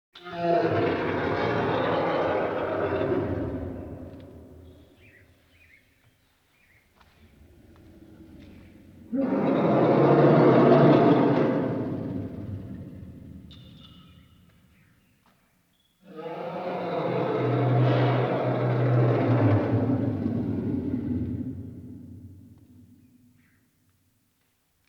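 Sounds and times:
lion roaring: 0.2s - 4.2s, 7.5s - 13.4s, 16.1s - 22.3s.

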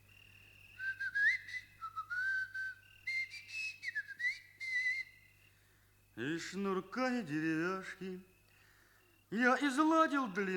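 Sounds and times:
long drawn-out whistle: 0.8s - 5.2s
speech: 6.2s - 8.3s, 9.3s - 10.5s.

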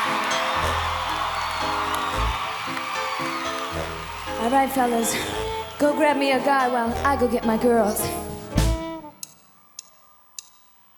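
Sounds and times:
audience applause: 0.0s - 6.2s
speech: 4.5s - 8.3s.

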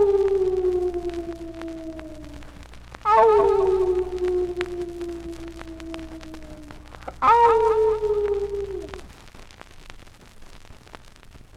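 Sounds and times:
dog howling: 0.0s - 9.0s.

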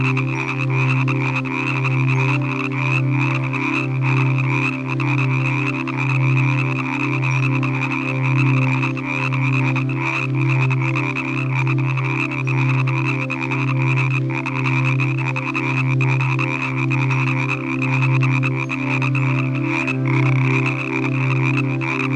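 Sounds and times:
frogs calling in a chorus in the evening: 0.0s - 22.1s.

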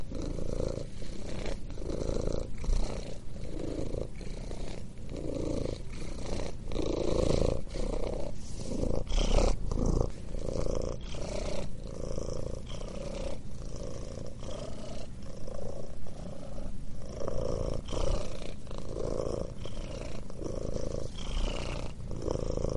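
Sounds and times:
cat purring: 0.0s - 22.7s.

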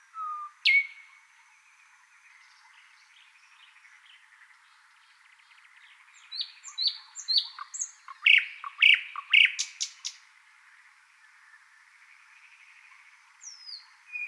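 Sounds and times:
thrush nightingale Luscinia luscinia singing: 0.0s - 14.2s.

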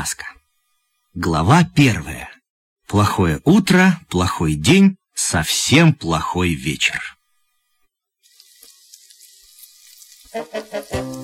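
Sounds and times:
speech: 0.0s - 0.4s, 1.2s - 2.3s, 2.9s - 7.2s, 10.3s - 11.2s
porridge burning in a pot on the stove: 8.1s - 11.2s.

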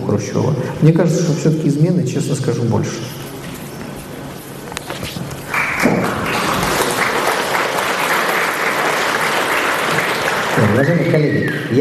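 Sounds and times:
speech: 0.2s - 3.3s, 10.6s - 11.7s
audience applause: 5.5s - 11.7s.

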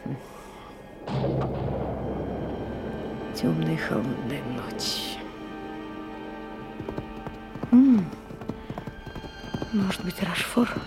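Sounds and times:
thunder in a thunderstorm: 1.0s - 9.0s
speech: 3.4s - 5.2s, 9.9s - 10.8s.

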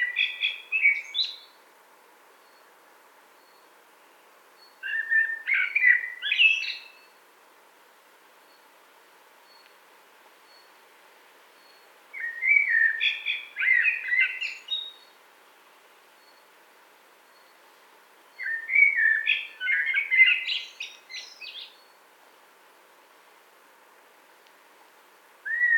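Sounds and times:
common blackbird singing: 0.0s - 1.6s, 4.6s - 7.1s, 11.6s - 15.1s, 18.4s - 21.9s, 25.4s - 25.7s.

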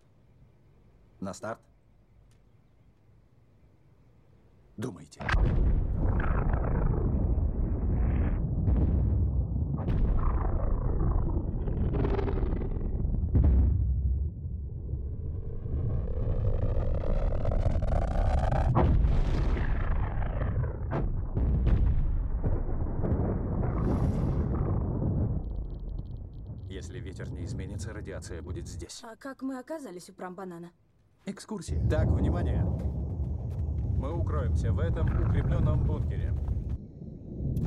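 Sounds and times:
speech: 1.2s - 1.7s, 4.8s - 6.2s, 27.9s - 33.0s, 34.0s - 36.4s
atomic bomb explosion: 5.2s - 28.8s, 31.7s - 37.6s.

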